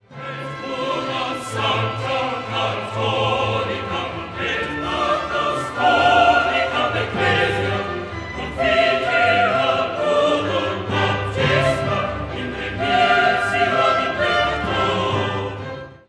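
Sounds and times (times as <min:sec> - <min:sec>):
choral chant: 0:00.0 - 0:16.0.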